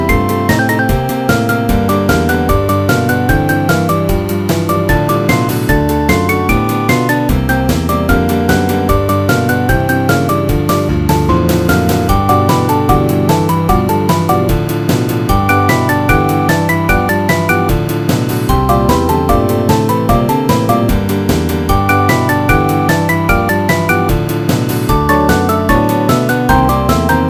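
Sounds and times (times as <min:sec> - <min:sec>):
blues riff: 0:00.0 - 0:27.2.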